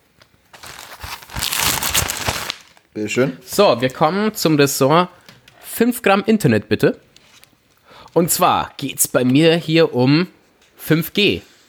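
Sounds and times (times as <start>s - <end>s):
rustling and crinkling: 0.4s - 2.8s, 7.1s - 7.7s
speech: 3.0s - 5.2s, 5.8s - 7.1s, 8.2s - 11.5s.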